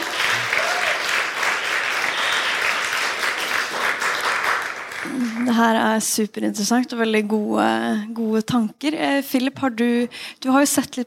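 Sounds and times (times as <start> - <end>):
audience applause: 0.0 - 5.5
speech: 5.5 - 11.0.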